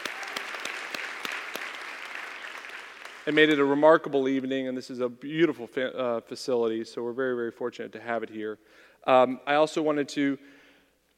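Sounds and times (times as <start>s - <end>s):
audience applause: 0.0s - 3.6s
speech: 3.2s - 10.6s.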